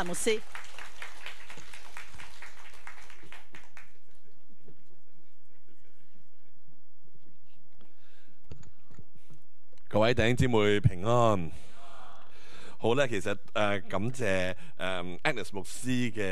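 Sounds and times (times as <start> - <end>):
speech: 0.0 - 0.7, 9.9 - 11.6, 12.8 - 16.3
audience applause: 0.0 - 4.4.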